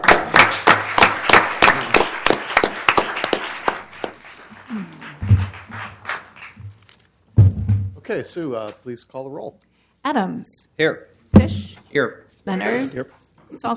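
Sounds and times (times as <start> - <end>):
audience applause: 0.0 - 7.0
speech: 8.1 - 13.7.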